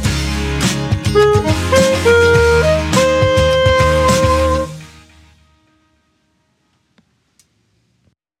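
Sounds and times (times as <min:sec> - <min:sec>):
saxophone: 0:01.0 - 0:05.9.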